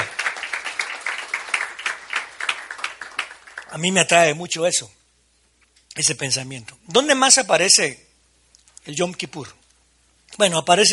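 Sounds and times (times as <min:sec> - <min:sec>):
audience applauding: 0:00.0 - 0:03.9
speech: 0:03.7 - 0:05.0, 0:06.0 - 0:08.1, 0:08.8 - 0:09.6, 0:10.3 - 0:10.9.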